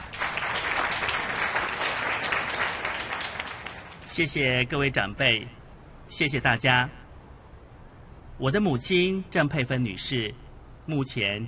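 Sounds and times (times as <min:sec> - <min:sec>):
audience applause: 0:00.0 - 0:04.1
speech: 0:04.2 - 0:07.0, 0:08.4 - 0:11.4.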